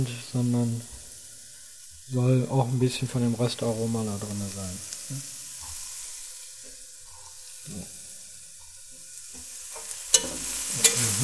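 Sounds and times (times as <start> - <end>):
speech: 0.0 - 0.9, 2.1 - 5.4, 7.7 - 8.0
onions frying in a pan: 0.0 - 11.2.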